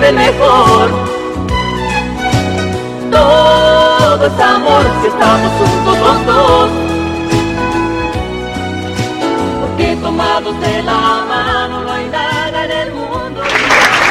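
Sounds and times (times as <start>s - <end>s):
live band playing a tune: 0.0s - 13.7s
speech: 0.1s - 1.2s
crowd applause: 13.4s - 14.0s.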